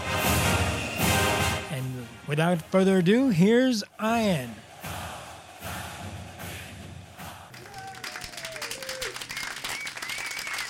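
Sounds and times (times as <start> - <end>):
faint whistles: 0.6 - 1.5, 8.6 - 10.6
speech: 2.3 - 5.0
crowd applause: 7.3 - 10.6.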